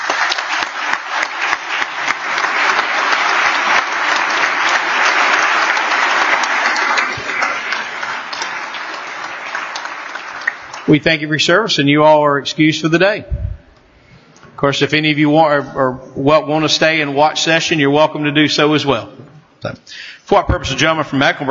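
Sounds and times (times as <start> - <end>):
legislators applauding the pages in a legislative chamber: 0.0 - 11.3
speech: 10.9 - 13.4, 14.6 - 21.5.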